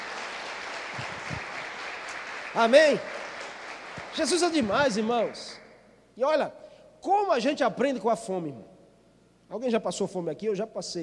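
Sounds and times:
audience applauding: 0.0s - 5.7s
speech: 2.6s - 3.2s, 4.2s - 5.6s, 6.2s - 8.7s, 9.5s - 11.0s.

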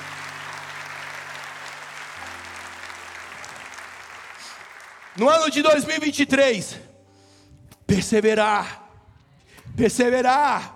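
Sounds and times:
audience applauding: 0.0s - 5.9s
low keyboard chord: 0.0s - 9.0s
speech: 5.2s - 6.9s, 7.9s - 8.8s, 9.8s - 10.7s.

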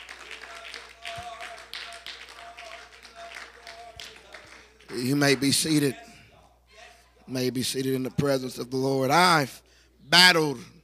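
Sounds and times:
audience clapping hands: 0.0s - 5.9s
speech: 4.9s - 6.0s, 7.3s - 10.8s.

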